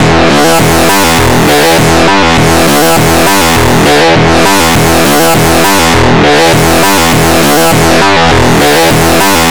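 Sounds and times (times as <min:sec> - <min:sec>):
drones: 0:00.0 - 0:09.4
drums: 0:00.0 - 0:09.4.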